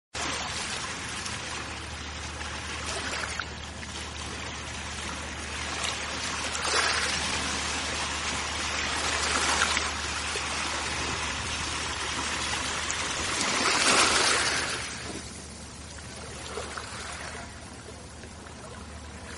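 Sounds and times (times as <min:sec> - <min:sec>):
ocean waves: 0:00.2 - 0:19.3.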